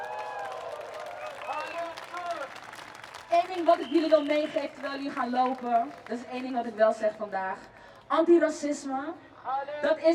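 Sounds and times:
crowd applauding at a demonstration: 0:00.0 - 0:06.8
speech: 0:03.3 - 0:10.1.

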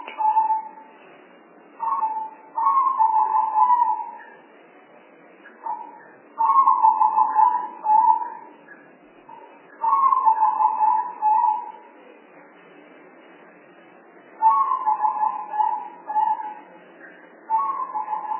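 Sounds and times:
spotted dove cooing: 0:01.8 - 0:04.2, 0:05.6 - 0:08.5, 0:09.8 - 0:11.8, 0:14.4 - 0:16.7, 0:17.5 - 0:18.3.

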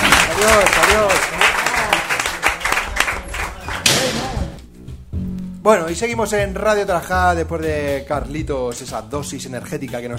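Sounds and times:
hand clapping for a departing guest: 0:00.0 - 0:04.6
speech: 0:00.4 - 0:01.4, 0:05.6 - 0:10.1.

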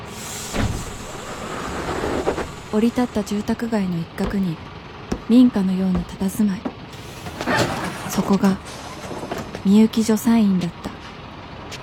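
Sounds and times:
moving bus engine rumble: 0:00.0 - 0:11.8
road noise in a moving bus: 0:00.0 - 0:11.8
thump or rattle: 0:00.4 - 0:03.0
speech: 0:02.7 - 0:04.6, 0:05.3 - 0:06.7, 0:07.6 - 0:08.8, 0:09.6 - 0:10.8.

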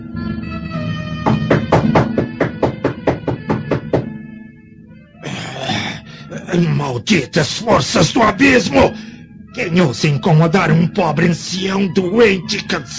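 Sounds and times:
knocking on a wooden door: 0:01.3 - 0:04.2
speech: 0:06.5 - 0:12.9.

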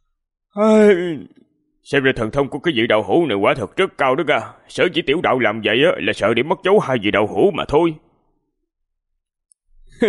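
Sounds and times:
person yawning: 0:00.6 - 0:01.3, 0:09.9 - 0:10.0
speech: 0:00.6 - 0:08.0.

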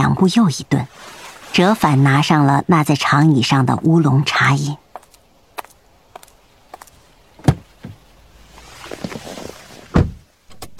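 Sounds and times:
speech: 0:00.0 - 0:04.8
soft rustle: 0:00.7 - 0:02.5, 0:04.8 - 0:10.0
car door pulled open at a roadside at night: 0:07.4 - 0:08.0, 0:09.9 - 0:10.2.

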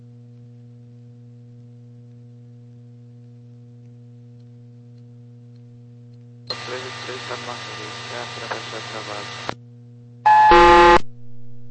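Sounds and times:
steady low electrical hum: 0:00.0 - 0:11.6
buzzy radio beep tone on air traffic radio: 0:06.5 - 0:09.5, 0:10.3 - 0:11.0
speech: 0:06.9 - 0:09.6.

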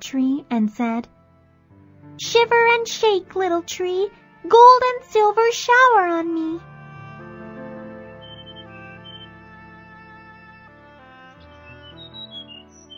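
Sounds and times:
speech: 0:00.1 - 0:01.2, 0:02.2 - 0:06.7
small bird chirping: 0:08.2 - 0:09.4, 0:11.4 - 0:12.9.

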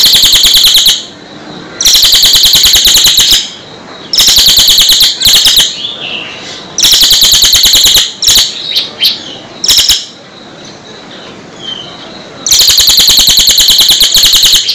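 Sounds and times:
bird singing rapid high chattering trills: 0:00.0 - 0:14.7.

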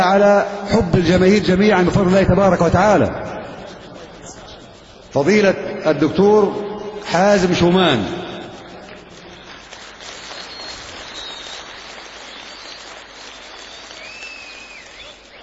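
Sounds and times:
speech: 0:00.0 - 0:03.5, 0:05.2 - 0:08.2
large audience clapping at a religious mass rally: 0:08.8 - 0:15.4
shrill whistles from the audience: 0:09.3 - 0:15.4.

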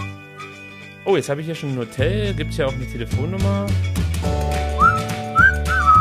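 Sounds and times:
person whistling a melody: 0:00.0 - 0:00.9, 0:04.7 - 0:06.0
speech: 0:01.0 - 0:04.4.

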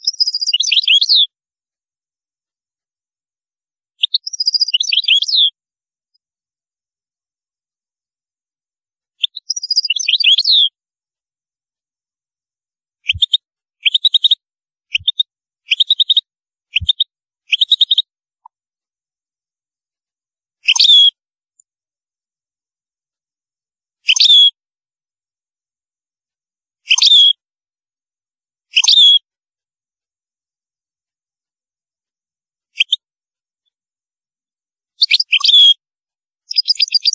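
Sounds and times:
European goldfinch singing: 0:00.0 - 0:01.3, 0:04.0 - 0:05.6, 0:09.2 - 0:10.8, 0:13.0 - 0:18.1, 0:20.7 - 0:21.2, 0:24.1 - 0:24.6, 0:26.9 - 0:27.4, 0:28.8 - 0:29.2, 0:32.8 - 0:33.0, 0:35.0 - 0:35.8, 0:36.5 - 0:37.1.

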